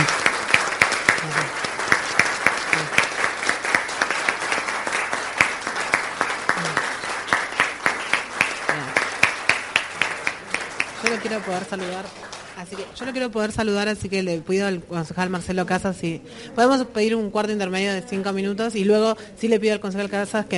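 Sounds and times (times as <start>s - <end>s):
council chamber applause: 0.0s - 13.3s
speech: 11.3s - 20.5s.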